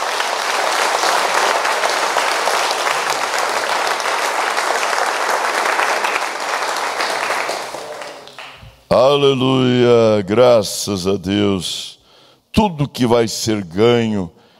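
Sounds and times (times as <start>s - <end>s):
audience clapping: 0.0s - 8.9s
speech: 8.9s - 12.0s, 12.6s - 14.4s.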